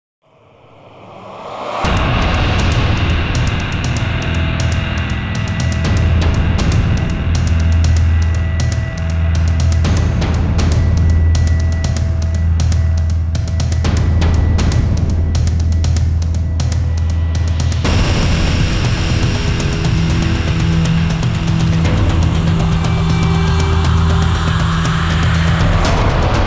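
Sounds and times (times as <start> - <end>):
epic 120 BPM cinematic trailer music: 0.9 - 26.4.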